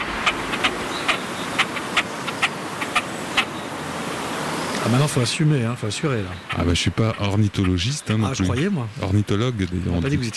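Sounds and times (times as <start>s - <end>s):
great crested grebe calling: 0.0s - 10.3s
steady hissing background: 0.0s - 10.3s
speech: 4.8s - 10.3s.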